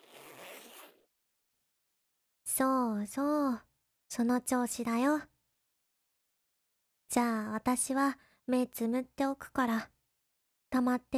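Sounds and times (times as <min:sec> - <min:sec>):
zipper being pulled down: 0:00.0 - 0:01.1
speech: 0:02.6 - 0:05.3, 0:07.1 - 0:09.9, 0:10.7 - 0:11.1.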